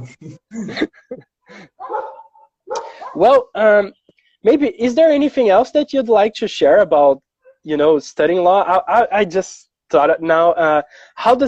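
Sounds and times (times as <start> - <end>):
speech: 0.0 - 1.7, 3.2 - 11.4
dogs barking: 1.8 - 3.6.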